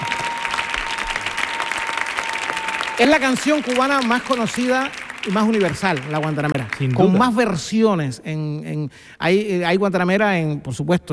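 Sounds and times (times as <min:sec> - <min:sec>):
audience applause: 0:00.0 - 0:07.6
speech: 0:03.0 - 0:11.1.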